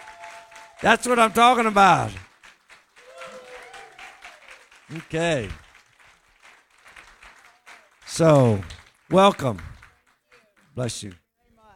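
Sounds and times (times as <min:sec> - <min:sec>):
loud cheer: 0:00.0 - 0:02.3, 0:03.0 - 0:05.8, 0:06.8 - 0:10.6
crowd applause: 0:00.0 - 0:11.2
speech: 0:00.8 - 0:02.3, 0:04.9 - 0:05.6, 0:08.2 - 0:09.7, 0:10.8 - 0:11.2.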